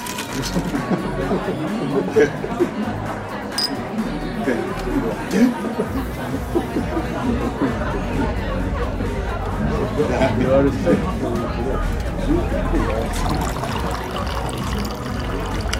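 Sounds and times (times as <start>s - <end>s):
murmuring bar babble of voices: 0.0s - 15.7s
laughter: 0.1s - 3.5s, 4.1s - 14.8s
brief clinks: 3.5s - 3.8s.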